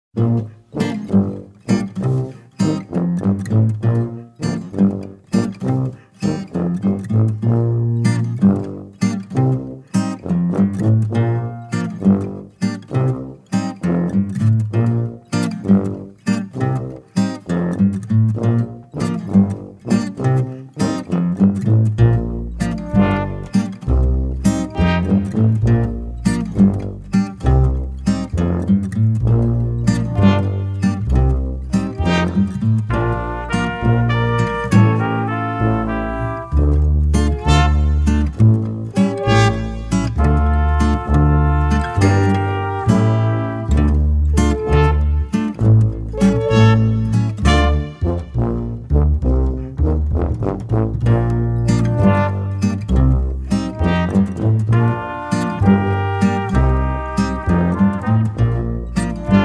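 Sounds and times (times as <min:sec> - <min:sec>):
instrumental music: 0:00.2 - 0:59.4.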